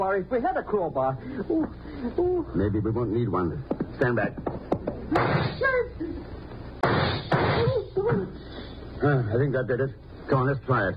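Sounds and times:
speech: 0.0s - 6.0s, 9.0s - 10.9s
gunshot fired at door lock: 5.2s - 5.6s, 6.8s - 7.7s.

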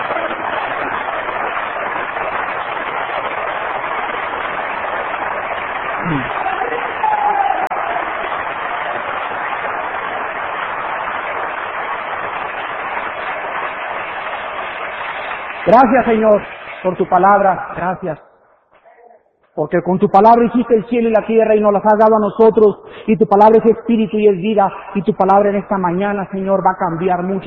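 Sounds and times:
audience applause: 0.0s - 17.0s
speech: 15.7s - 18.2s, 19.6s - 27.4s.

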